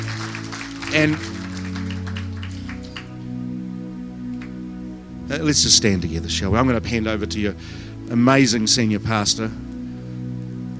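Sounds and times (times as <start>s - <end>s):
audience clapping: 0.0s - 3.4s, 4.3s - 4.6s
speech: 0.9s - 1.4s, 5.3s - 9.7s.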